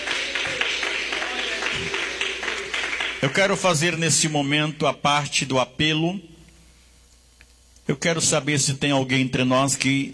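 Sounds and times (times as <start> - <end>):
audience clapping: 0.0 - 4.3
speech: 3.2 - 6.3, 7.9 - 10.1.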